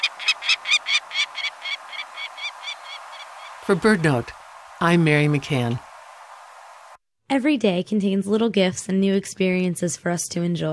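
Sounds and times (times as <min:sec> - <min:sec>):
peregrine falcon call: 0:00.0 - 0:05.8
speech: 0:03.7 - 0:05.9, 0:07.3 - 0:10.7.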